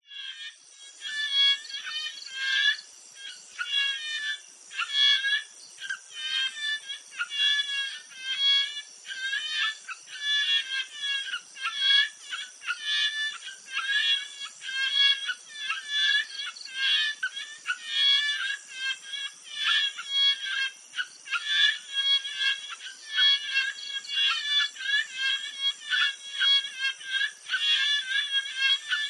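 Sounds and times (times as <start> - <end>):
frogs giving mating calls at a jungle pond at night in Thailand: 0.1 - 29.0.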